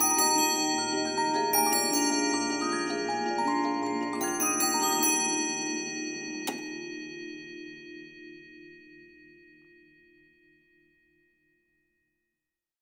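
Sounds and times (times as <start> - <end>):
music box: 0.0 - 10.2.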